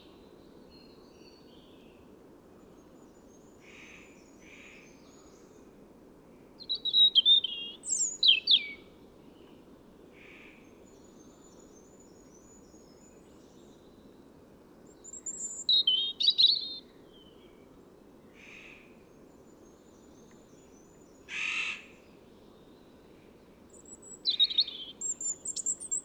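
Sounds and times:
European robin Erithacus rubecula thin high whistle and tinkling warble: 6.6s - 8.8s, 15.0s - 16.8s, 23.7s - 26.0s.

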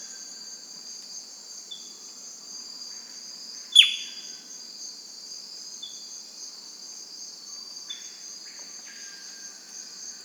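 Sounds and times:
high-pitched insect chorus: 0.0s - 10.2s
bird calling: 3.8s - 4.1s.

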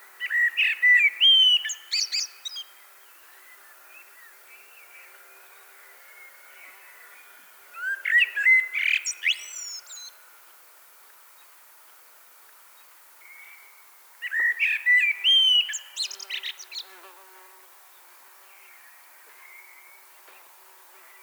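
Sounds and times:
Common blackbird singing: 0.2s - 2.7s, 7.8s - 10.1s, 14.2s - 17.0s.

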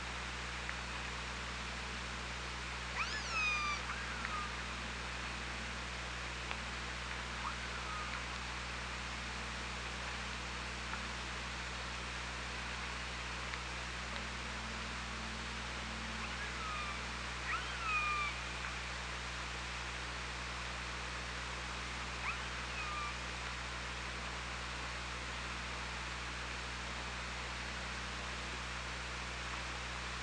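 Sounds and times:
low hum: 0.0s - 30.2s
killer whale harmonic tonal calls: 3.0s - 4.6s, 7.4s - 8.3s, 16.2s - 18.4s.

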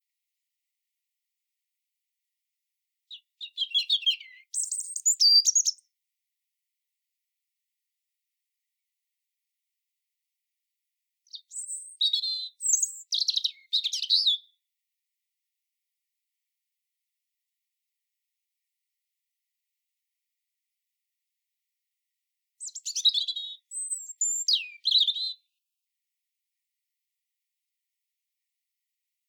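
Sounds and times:
European robin song: 3.1s - 5.9s, 11.2s - 14.7s, 22.6s - 25.6s.

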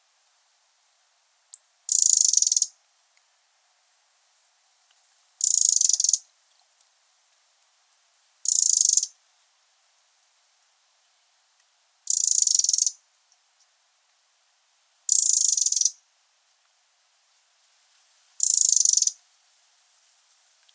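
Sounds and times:
Eurasian wren churring rattle: 1.5s - 2.8s, 5.4s - 6.3s, 8.4s - 9.2s, 12.0s - 13.0s, 15.1s - 16.0s, 18.4s - 19.2s.

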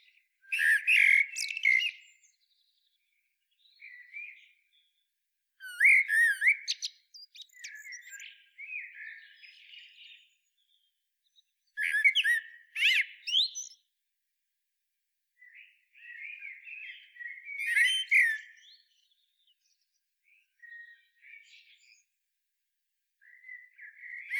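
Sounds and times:
common blackbird song: 0.0s - 2.9s, 5.6s - 13.8s, 15.4s - 22.1s, 23.2s - 24.3s.

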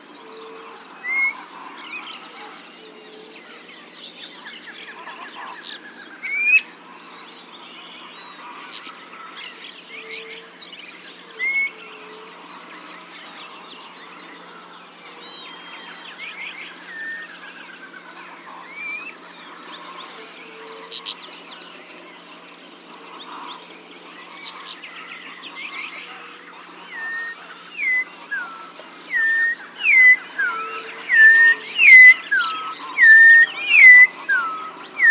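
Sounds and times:
bird: 0.0s - 35.0s.

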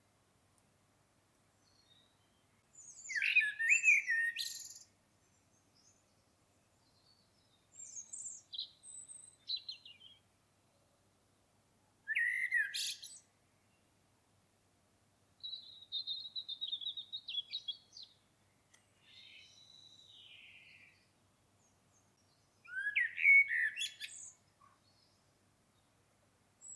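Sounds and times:
common blackbird singing: 1.6s - 4.9s, 6.8s - 10.2s, 12.1s - 13.3s, 15.4s - 18.2s, 19.0s - 21.1s, 22.2s - 25.2s.

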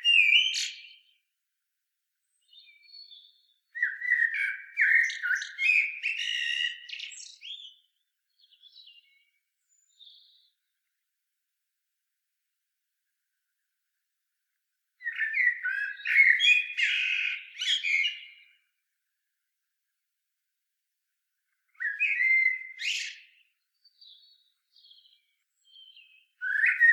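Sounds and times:
common blackbird song of fluted notes and twitters: 2.3s - 10.5s, 15.0s - 18.6s, 21.8s - 26.9s.

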